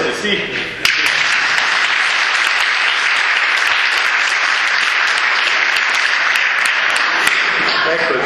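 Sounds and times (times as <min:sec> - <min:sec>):
speech: 0:00.2 - 0:00.8
crowd clapping: 0:00.8 - 0:08.1.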